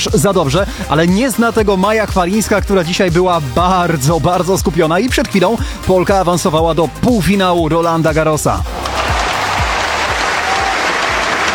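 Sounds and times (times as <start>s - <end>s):
speech: 0.0s - 8.8s
applause: 8.8s - 11.5s.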